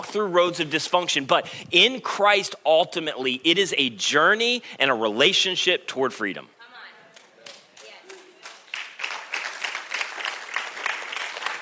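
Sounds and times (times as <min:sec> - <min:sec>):
speech: 0:00.1 - 0:06.6
audience clapping hesitantly: 0:07.1 - 0:11.6.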